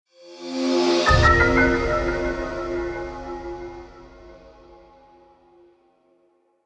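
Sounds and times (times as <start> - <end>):
item get fanfare: 0.6 - 4.9.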